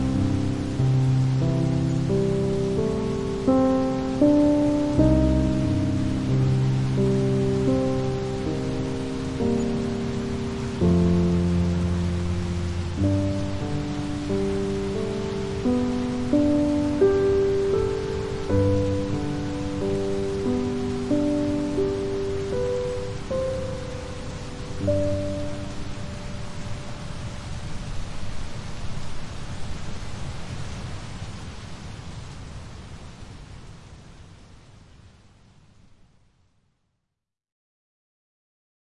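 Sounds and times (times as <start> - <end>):
calming piano music: 0.0 - 28.0
rain in nature: 0.0 - 36.8.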